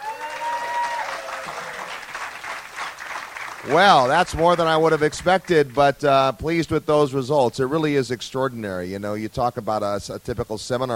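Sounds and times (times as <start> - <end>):
audience clapping: 0.0 - 6.2
speech: 3.6 - 10.9.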